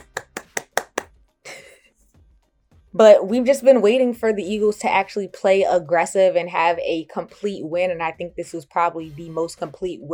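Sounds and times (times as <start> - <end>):
hand claps: 0.0 - 1.2
speech: 2.9 - 10.1.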